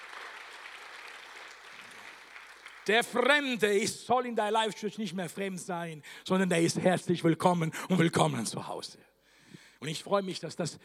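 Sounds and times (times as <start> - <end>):
audience applause: 0.0 - 3.4
speech: 2.9 - 9.1, 9.8 - 10.8.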